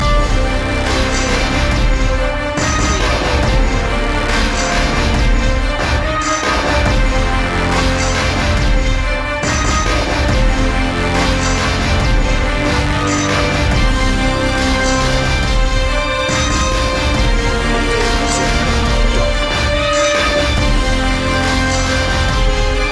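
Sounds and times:
music loop: 0.0s - 22.9s.

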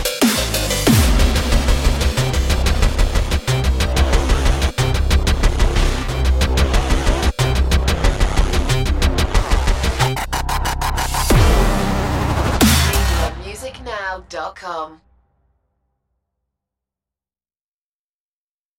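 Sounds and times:
dubstep: 0.0s - 14.3s.

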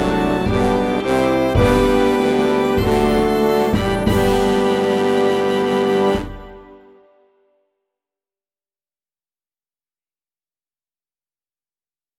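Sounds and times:
brass playing a carol: 0.0s - 7.4s.

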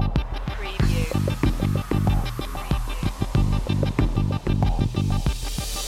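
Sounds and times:
incoming transmission signal: 0.2s - 5.8s.

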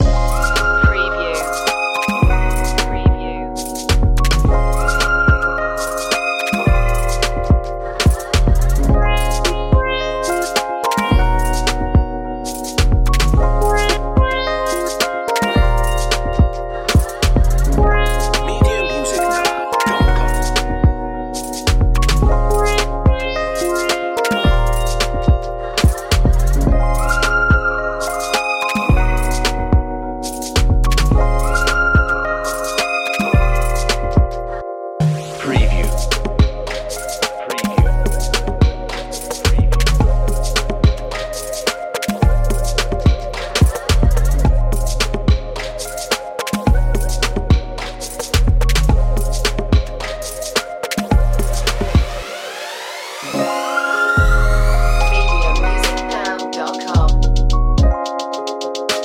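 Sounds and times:
hip hop main loop: 0.0s - 59.0s.

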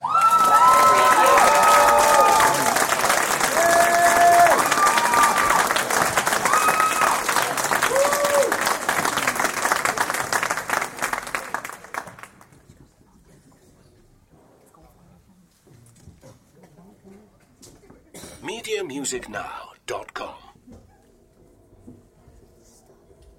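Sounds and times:
audience applause: 0.0s - 12.5s.

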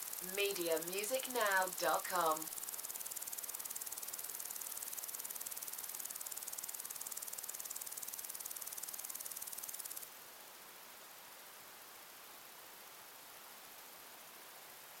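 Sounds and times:
crickets pulsing trill: 0.0s - 10.0s
soft hiss: 0.0s - 14.9s
speech: 0.2s - 2.6s.

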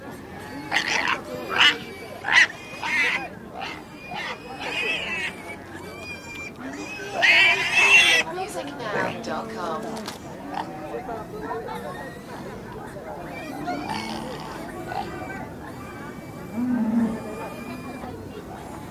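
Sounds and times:
pig market: 0.0s - 18.8s.

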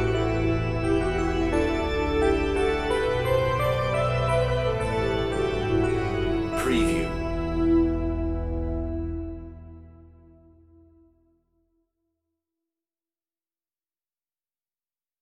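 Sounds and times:
synth organ: 0.0s - 11.1s.

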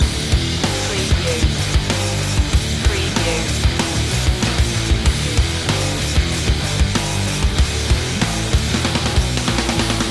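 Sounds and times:
metal rage music loop: 0.0s - 10.0s.

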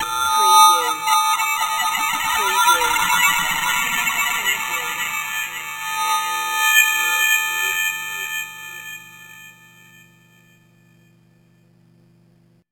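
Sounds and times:
short evil music: 0.0s - 9.0s.

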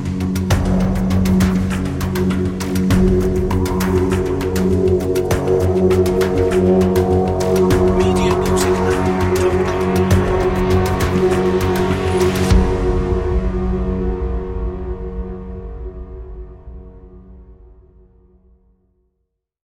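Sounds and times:
suspenseful drum and bass music: 0.0s - 14.6s.

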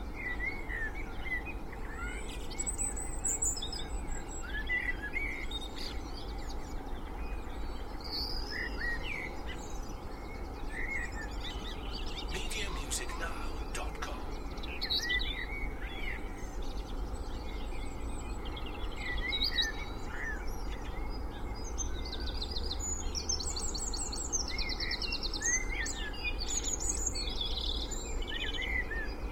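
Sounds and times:
spring dawn chorus birdsong in Cheshire UK: 0.0s - 29.3s
distant traffic noise in Cheshire UK: 12.2s - 14.8s.

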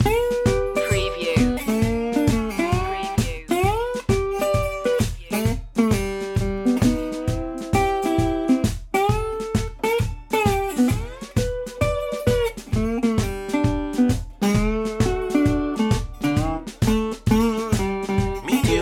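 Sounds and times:
blues loop: 0.0s - 18.8s.

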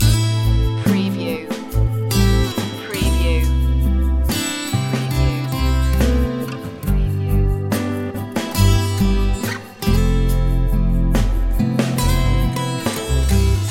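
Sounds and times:
mellow guitars loop: 0.0s - 13.6s.

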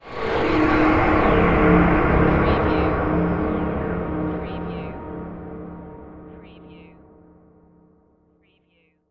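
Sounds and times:
production element sweeper: 0.0s - 7.6s.

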